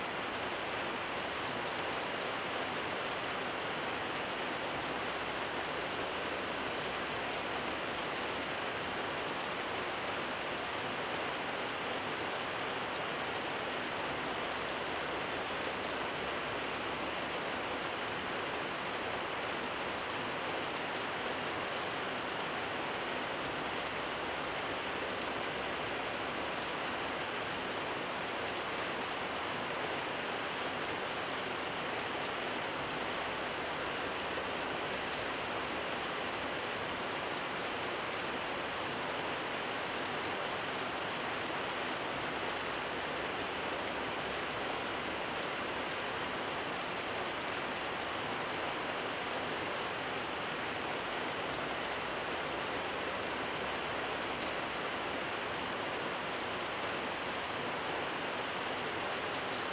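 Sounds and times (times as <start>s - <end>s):
rain: 0.0s - 59.7s.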